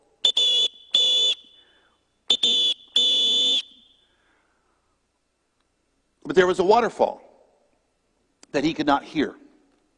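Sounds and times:
shrill whistle blasts: 0.2 - 4.3
speech: 6.4 - 7.3, 8.5 - 9.4.

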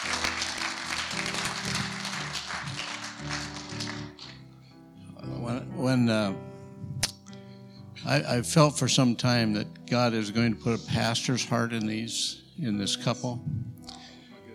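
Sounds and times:
audience applause: 0.0 - 4.4
speech: 5.8 - 6.5, 8.0 - 13.6.

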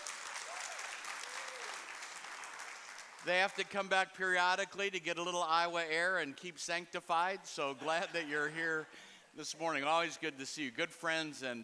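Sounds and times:
church congregation applause welcoming a pastor and his wife: 0.0 - 3.8
speech: 3.2 - 11.6.

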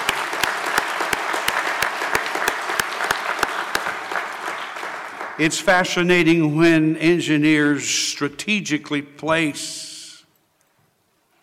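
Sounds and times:
audience clapping: 0.0 - 6.2
speech: 5.4 - 9.9.

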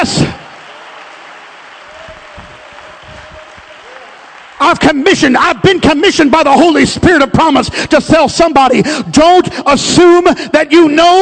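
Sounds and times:
audience clapping hands: 0.0 - 5.6
speech: 4.6 - 11.2.

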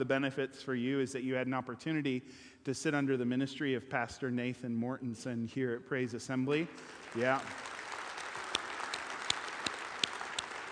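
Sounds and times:
speech: 0.0 - 7.8
audience clapping: 6.7 - 10.7.

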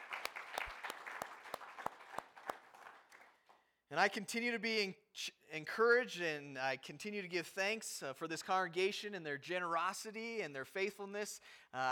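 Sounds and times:
audience applause: 0.0 - 3.4
speech: 3.9 - 11.8.

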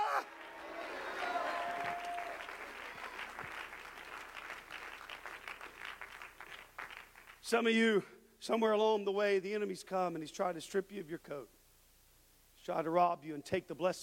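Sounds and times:
people clapping: 0.0 - 7.5
speech: 7.5 - 11.6, 12.7 - 14.0.

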